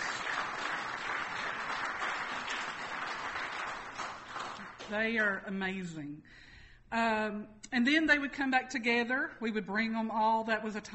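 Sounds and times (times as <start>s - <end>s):
audience applause for the main teachers: 0.0s - 5.0s
speech: 4.9s - 10.9s.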